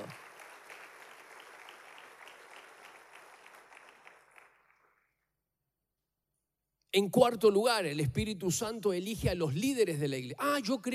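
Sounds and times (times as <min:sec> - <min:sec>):
audience applause: 0:00.0 - 0:05.0
speech: 0:07.0 - 0:10.9.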